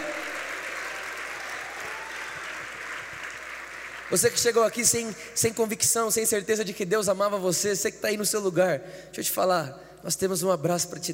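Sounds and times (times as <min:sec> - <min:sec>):
audience applauding: 0:00.0 - 0:05.1
speech: 0:04.1 - 0:11.1.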